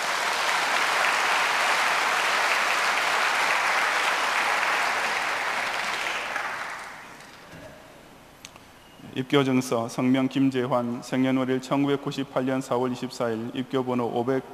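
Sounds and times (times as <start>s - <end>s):
audience applause: 0.0s - 7.4s
speech: 9.2s - 14.5s.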